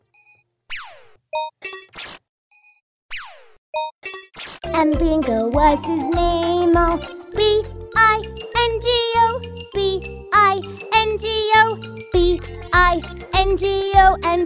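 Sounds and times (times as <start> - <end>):
American singer singing: 4.7 - 14.4.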